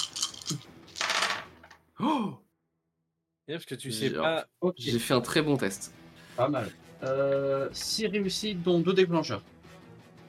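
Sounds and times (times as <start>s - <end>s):
dice rolled on a table in a tabletop game: 0.0s - 1.8s
person exclaiming: 2.0s - 2.4s
speech: 2.0s - 2.4s, 3.5s - 9.6s.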